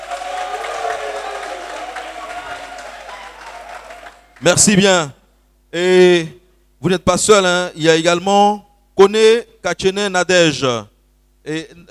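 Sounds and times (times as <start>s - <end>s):
crowd applauding: 0.0s - 4.6s
speech: 4.4s - 11.8s.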